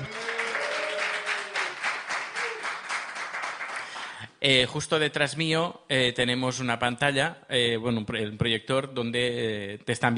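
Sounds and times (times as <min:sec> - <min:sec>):
live audience applause: 0:00.0 - 0:04.2
speech: 0:04.4 - 0:10.1.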